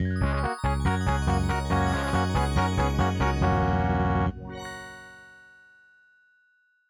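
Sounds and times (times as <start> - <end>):
fanfare on Roland: 0.4 - 5.3.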